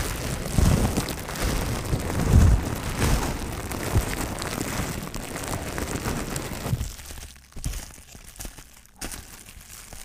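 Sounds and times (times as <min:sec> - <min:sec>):
soft low bumps: 0:00.0 - 0:07.2
plastic and bubble wrap crinkling: 0:00.0 - 0:10.0.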